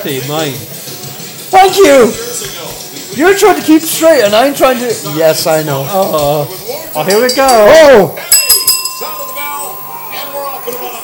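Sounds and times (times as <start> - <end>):
speech: 0.0 - 0.8, 1.5 - 8.3
busy noisy background: 0.0 - 11.0
ring bell at the WrestleMania XVII pro wrestling event: 6.6 - 11.0.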